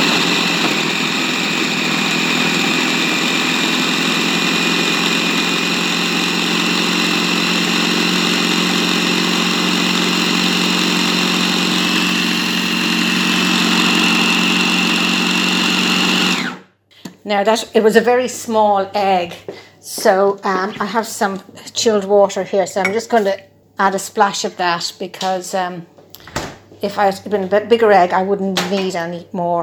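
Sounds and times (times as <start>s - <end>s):
food processor mixing pastry dough: 0.0s - 16.7s
speech: 17.3s - 29.6s.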